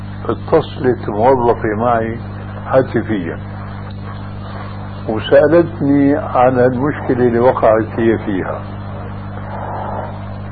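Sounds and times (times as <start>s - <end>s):
speech: 0.2s - 3.5s, 5.0s - 8.8s
car passing outside: 9.4s - 10.4s.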